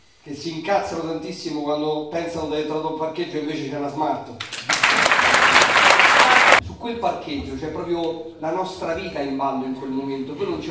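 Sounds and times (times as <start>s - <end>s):
speech: 0.2s - 4.5s, 6.8s - 10.6s
audience applause: 4.4s - 6.6s.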